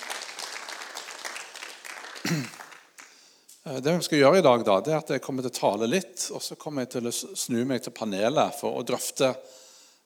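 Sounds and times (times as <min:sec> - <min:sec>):
audience applause: 0:00.0 - 0:03.1
speech: 0:02.3 - 0:02.6, 0:03.6 - 0:09.6.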